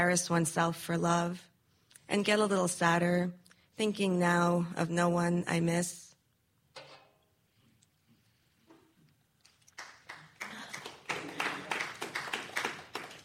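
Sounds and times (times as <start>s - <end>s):
speech: 0.0s - 1.5s, 2.1s - 6.0s
small audience clapping: 9.4s - 13.2s.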